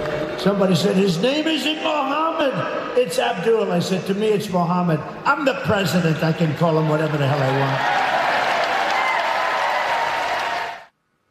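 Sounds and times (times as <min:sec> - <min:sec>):
speech: 0:00.4 - 0:08.0
audience applause at a political rally: 0:07.0 - 0:10.9.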